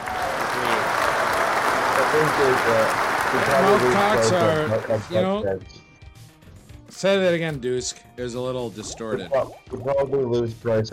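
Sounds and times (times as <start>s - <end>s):
applause sound effect: 0.0s - 5.4s
speech: 2.1s - 5.8s, 7.0s - 10.9s.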